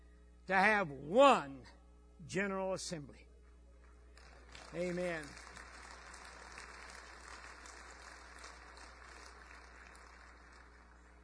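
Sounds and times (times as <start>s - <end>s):
speech: 0.5s - 3.3s, 4.7s - 5.5s
audience applause: 4.2s - 11.2s.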